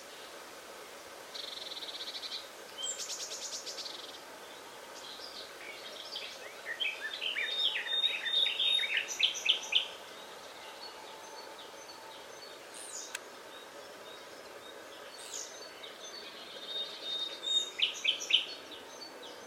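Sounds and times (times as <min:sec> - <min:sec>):
common nightingale Luscinia megarhynchos singing: 0:01.3 - 0:19.4.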